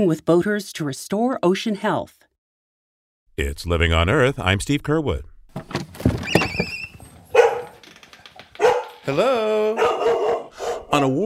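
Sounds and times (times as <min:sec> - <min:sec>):
speech: 0:00.0 - 0:02.2, 0:03.4 - 0:05.9, 0:09.0 - 0:10.2, 0:10.9 - 0:11.2
border collie barking: 0:07.3 - 0:07.8, 0:08.6 - 0:09.0, 0:09.8 - 0:11.0.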